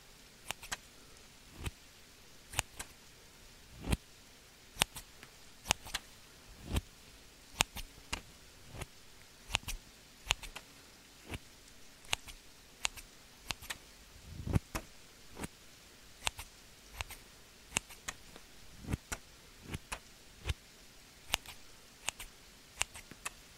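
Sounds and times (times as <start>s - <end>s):
faint steady hiss: 0.0s - 23.5s
scissors snipping: 0.4s - 0.8s, 1.6s - 1.8s, 2.5s - 2.9s, 4.8s - 6.0s, 7.6s - 8.2s, 9.5s - 10.6s, 12.0s - 13.8s, 16.2s - 18.2s, 21.3s - 23.4s.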